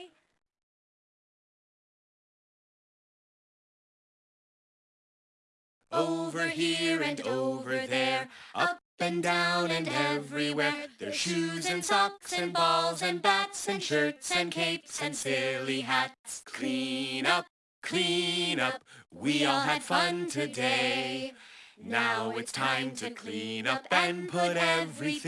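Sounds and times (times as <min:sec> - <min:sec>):
song vocals: 0:05.9 - 0:25.2.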